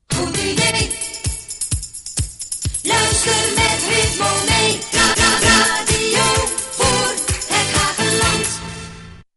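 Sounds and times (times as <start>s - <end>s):
jingle: 0.2s - 8.9s.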